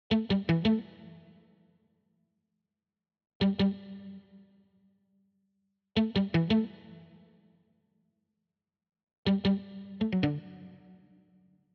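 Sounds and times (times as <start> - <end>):
guitar: 0.1 - 1.6, 3.4 - 4.5, 6.0 - 7.6, 9.3 - 11.2.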